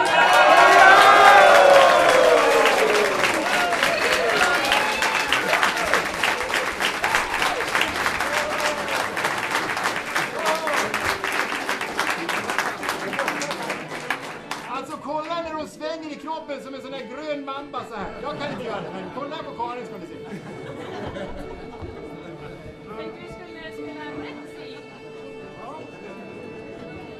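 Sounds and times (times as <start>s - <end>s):
laughter: 0.0s - 14.4s, 18.0s - 23.1s
people cheering: 0.0s - 14.8s
audience applause for a new female game leader: 0.0s - 14.9s.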